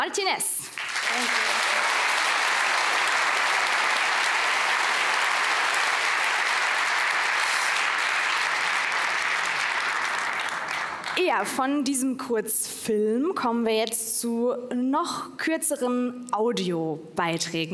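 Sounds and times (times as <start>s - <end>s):
speech: 0.0s - 1.7s, 11.2s - 17.7s
audience applause: 0.7s - 11.2s.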